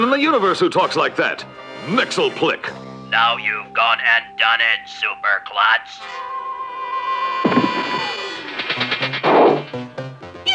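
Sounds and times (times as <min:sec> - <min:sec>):
speech: 0:00.0 - 0:06.4
steady high tone: 0:02.1 - 0:10.5.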